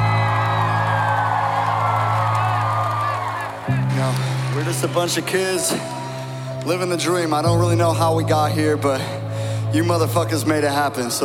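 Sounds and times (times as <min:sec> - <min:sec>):
audience applause and cheering: 0:00.0 - 0:07.6
speech: 0:04.0 - 0:06.0, 0:06.6 - 0:11.2.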